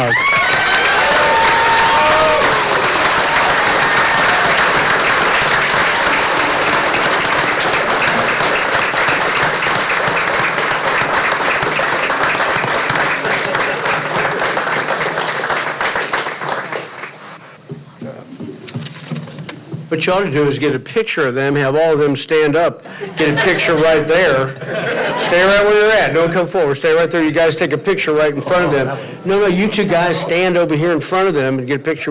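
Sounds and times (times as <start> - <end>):
round of applause and cheering: 0.0 - 17.4
laughter: 13.1 - 14.4, 22.9 - 26.1, 28.2 - 30.3
speech: 20.1 - 32.0.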